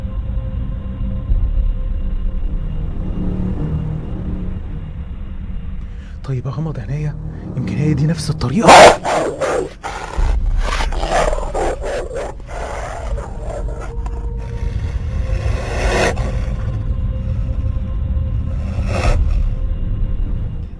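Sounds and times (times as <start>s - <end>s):
deep rumbling undertone: 0.1s - 20.7s
speech: 6.4s - 9.3s
dog snarling and growling aggressively: 8.3s - 19.6s
scuffle with rough scraping and thrashing noises: 8.7s - 16.7s.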